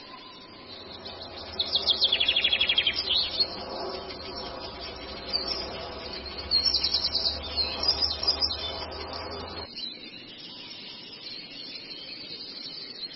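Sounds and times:
long-tailed shrike song: 0.3 - 9.7.

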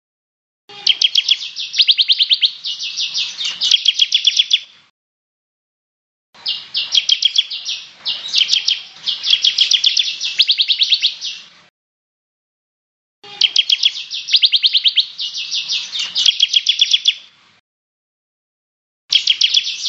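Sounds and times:
bird song: 0.7 - 4.8, 6.4 - 11.5, 13.2 - 17.3, 19.1 - 19.8.

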